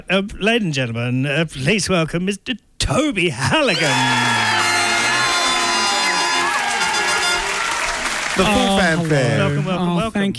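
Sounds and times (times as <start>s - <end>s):
speech: 0.0s - 4.4s, 8.4s - 10.3s
studio audience whoops and cheers: 3.7s - 9.1s
studio audience applause: 3.8s - 9.7s.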